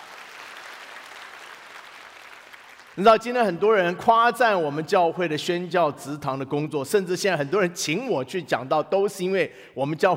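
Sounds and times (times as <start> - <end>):
church congregation applauding: 0.0 - 3.0
speech: 3.0 - 10.1.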